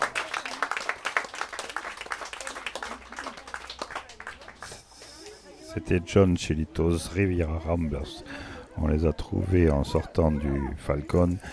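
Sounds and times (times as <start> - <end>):
audience applause: 0.0 - 5.2
speech: 5.8 - 11.5.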